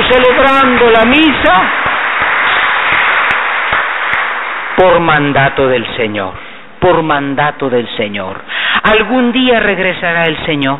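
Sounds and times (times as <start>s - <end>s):
congregation applauding during a Catholic mass: 0.0s - 6.5s
speech: 0.1s - 1.9s, 4.8s - 10.7s.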